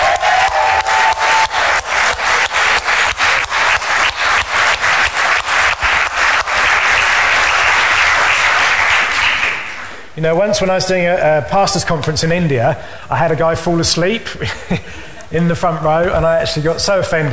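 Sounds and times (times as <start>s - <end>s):
audience rhythmic applause: 0.0s - 10.1s
speech: 10.2s - 17.3s.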